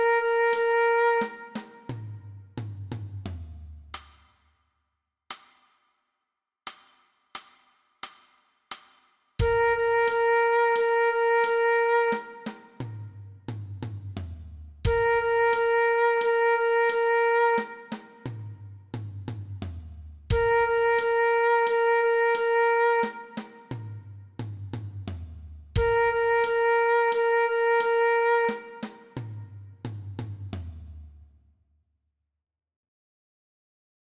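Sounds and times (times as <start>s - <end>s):
transverse flute play-along track: 0.0s - 2.2s, 9.4s - 13.2s, 14.9s - 18.6s, 20.3s - 24.0s, 25.8s - 29.5s.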